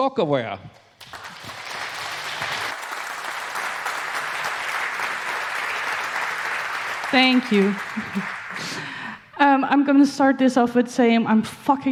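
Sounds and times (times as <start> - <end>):
speech: 0.0 - 0.8, 7.1 - 11.9
audience applause: 1.0 - 9.1.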